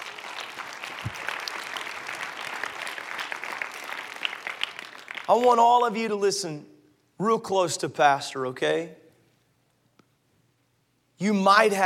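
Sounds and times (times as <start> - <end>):
audience applause: 0.0 - 5.3
speech: 5.3 - 9.0, 11.2 - 11.8.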